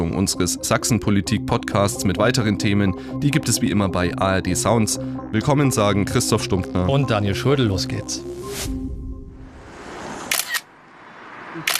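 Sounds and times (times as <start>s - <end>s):
speech: 0.0s - 8.8s
speed camera snapping a photo: 10.3s - 10.6s.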